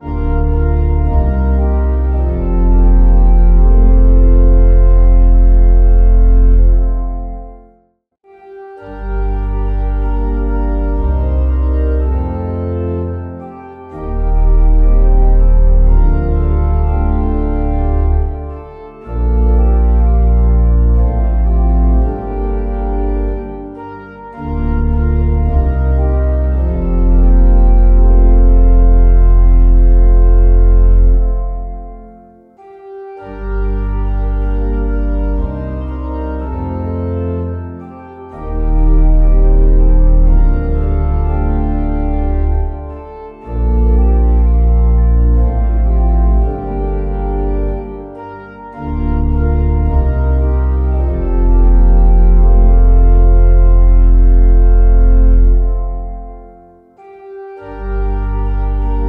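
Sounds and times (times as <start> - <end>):
organ playing a hymn: 0.0 - 59.0.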